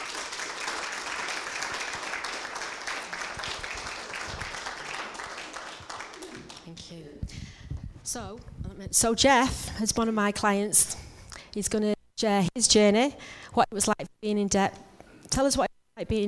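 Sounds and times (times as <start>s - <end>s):
audience applause: 0.0s - 6.8s
speech: 8.1s - 11.0s, 11.6s - 16.2s.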